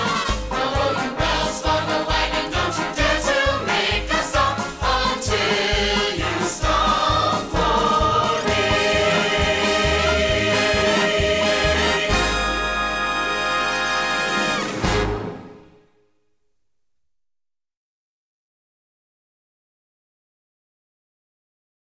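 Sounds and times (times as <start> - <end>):
vocals: 0.0 - 15.0.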